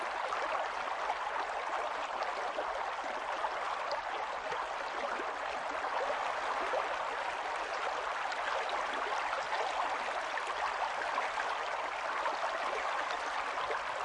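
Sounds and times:
gentle rivers and streams flowing: 0:00.0 - 0:14.0.

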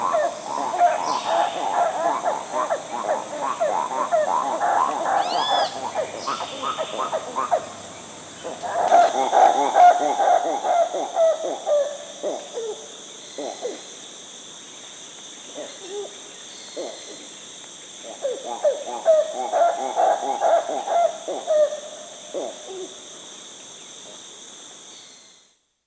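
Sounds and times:
yellow-handed titi monkey calling in South American rainforest: 0:00.0 - 0:12.8, 0:18.2 - 0:22.9.

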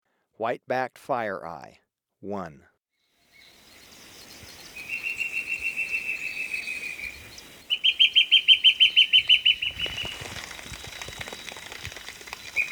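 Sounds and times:
white-backed fire-eye whistled song in Ecuador: 0:03.4 - 0:10.2.

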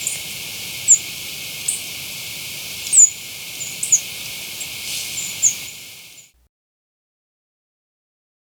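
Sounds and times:
Giant Conebill in Ecuador: 0:00.0 - 0:06.3.

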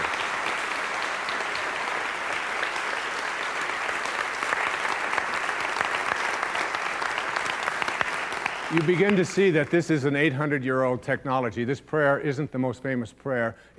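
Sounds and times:
audience applause: 0:00.0 - 0:10.0
speech: 0:08.7 - 0:13.7.

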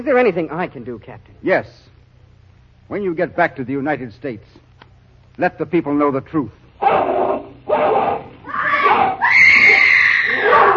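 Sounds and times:
speech: 0:00.0 - 0:01.9, 0:02.9 - 0:04.7, 0:05.4 - 0:07.1
woman screaming while fighting off a dog: 0:07.8 - 0:10.7.

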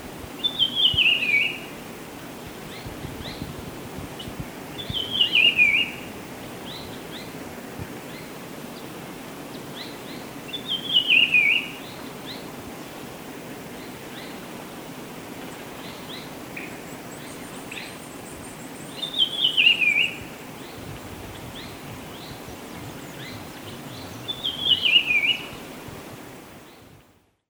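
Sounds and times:
Black-bellied Peppershrike calling in Ecuador: 0:00.4 - 0:01.7, 0:04.8 - 0:07.3, 0:09.8 - 0:12.0, 0:15.5 - 0:25.7.

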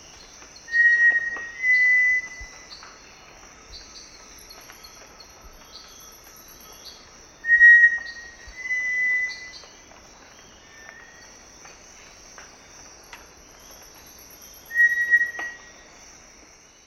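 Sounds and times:
insects droning: 0:00.0 - 0:16.8
cinereous tinamou song: 0:00.7 - 0:02.6, 0:07.5 - 0:09.6, 0:14.7 - 0:15.6.

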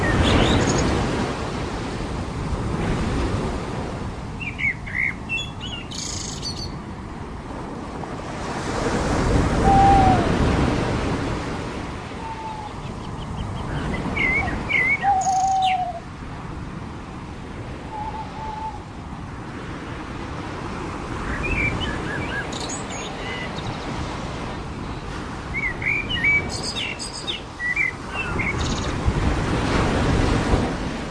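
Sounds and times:
birds on the beach: 0:00.0 - 0:01.1, 0:04.4 - 0:06.8, 0:12.0 - 0:16.1, 0:21.2 - 0:29.0
ocean waves on the beach: 0:00.0 - 0:31.0.

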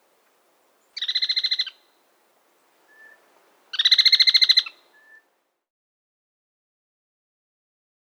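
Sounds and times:
Trilling Tapulco Scytalopus Parviro in South America: 0:00.8 - 0:02.0, 0:02.7 - 0:05.2.

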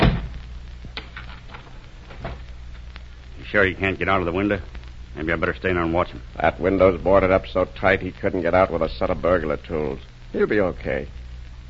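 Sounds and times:
door shutting with a heavy low thud: 0:00.0 - 0:00.3
steady low hum: 0:00.0 - 0:11.6
speech: 0:03.5 - 0:11.6.

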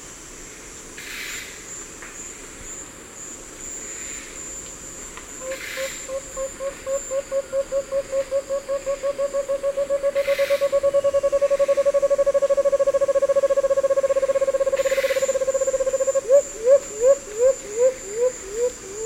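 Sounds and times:
Striated antthrush hooting in the eastern lowlands of South America: 0:05.4 - 0:19.0.

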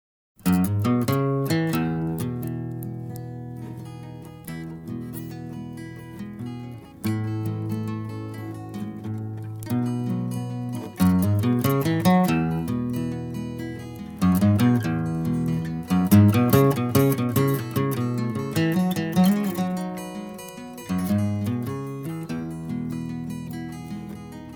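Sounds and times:
desert blues music: 0:00.4 - 0:24.5.

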